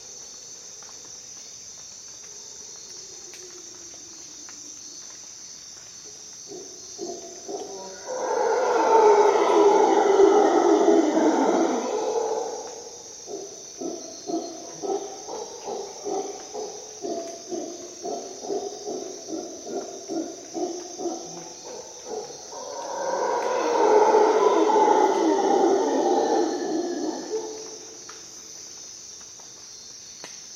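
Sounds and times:
high-pitched insect chorus: 0.0 - 30.5
howler monkey roaring: 7.0 - 27.8.

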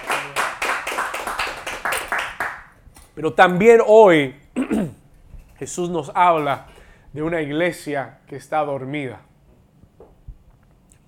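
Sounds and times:
audience applauding: 0.0 - 2.8
speech: 3.2 - 5.0, 5.6 - 9.3.

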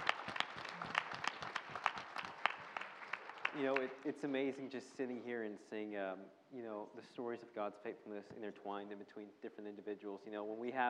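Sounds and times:
audience round of applause: 0.0 - 4.0
speech: 3.6 - 10.8.

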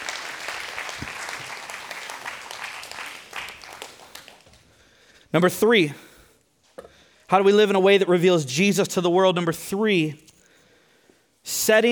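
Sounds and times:
audience applause: 0.0 - 4.7
speech: 5.3 - 6.1, 7.3 - 10.3, 11.4 - 11.9.

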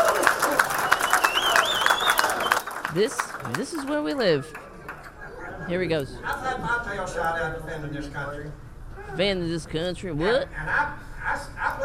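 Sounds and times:
crowd applauding: 0.0 - 5.2
speech: 2.9 - 4.6, 5.6 - 11.8.

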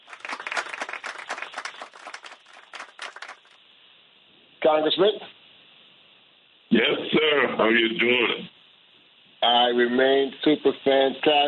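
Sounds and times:
audience clapping: 0.0 - 3.6
speech: 4.6 - 5.3, 6.8 - 8.5, 9.4 - 11.4.

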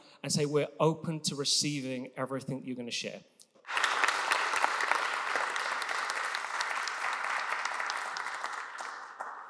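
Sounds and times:
speech: 0.2 - 3.3
audience applauding to welcome a guest speaker: 3.7 - 9.4.

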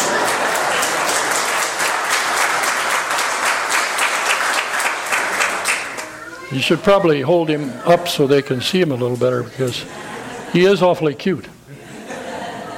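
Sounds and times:
laughter: 0.0 - 3.1, 7.2 - 12.7
audience applause: 0.0 - 6.2
speech: 6.5 - 11.6.

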